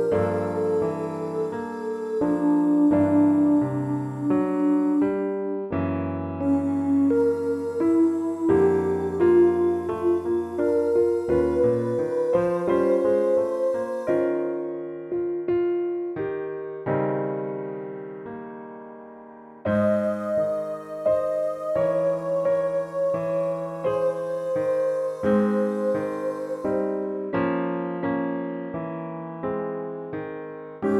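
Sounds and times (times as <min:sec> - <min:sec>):
piano study: 0:00.0 - 0:30.9.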